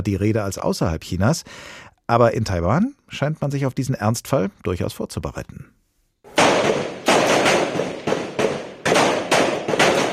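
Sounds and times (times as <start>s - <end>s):
speech: 0.0s - 5.8s
rifle shots at a Taiwanese reservists' refresher drill: 6.3s - 10.1s.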